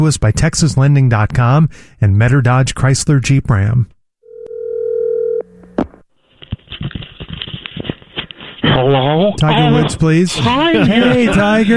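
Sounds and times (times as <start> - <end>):
speech: 0.0 - 4.0, 8.8 - 11.7
telephone dial tone: 4.3 - 5.7
laughter: 8.6 - 11.7.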